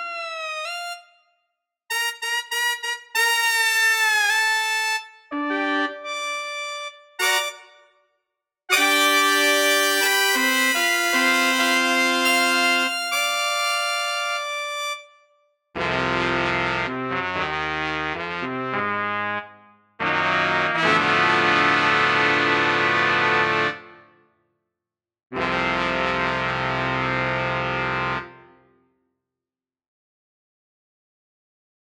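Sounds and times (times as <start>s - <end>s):
brass instruments: 0.0s - 1.1s, 1.9s - 8.0s, 8.7s - 15.1s, 15.8s - 24.2s, 25.3s - 28.7s.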